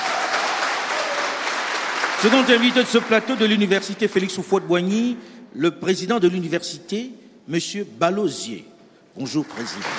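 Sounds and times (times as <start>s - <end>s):
audience applause: 0.0s - 4.3s, 9.2s - 9.9s
speech: 2.2s - 9.9s.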